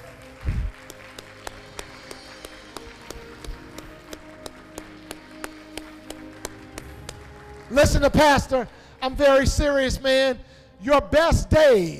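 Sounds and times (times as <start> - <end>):
audience clapping hands: 0.0 - 9.0
speech: 7.7 - 11.9.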